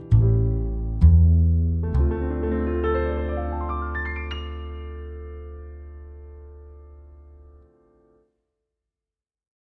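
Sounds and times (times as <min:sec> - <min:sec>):
jazz trio playing: 0:00.0 - 0:05.8.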